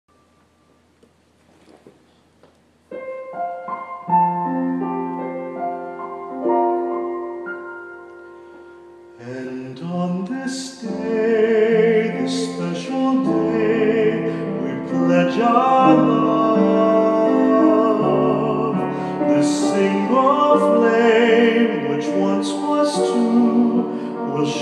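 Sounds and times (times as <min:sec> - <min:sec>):
wedding music for unity candle: 0:02.9 - 0:24.6.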